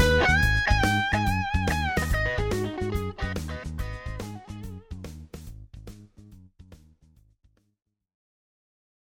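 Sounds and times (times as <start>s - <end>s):
crunchy electric guitar on middle pickup: 0.0s - 5.5s.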